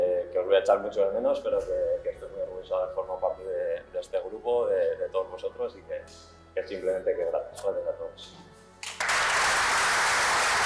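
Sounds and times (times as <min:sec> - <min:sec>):
speech: 0:00.6 - 0:08.5
applause from the football squad: 0:08.8 - 0:10.6.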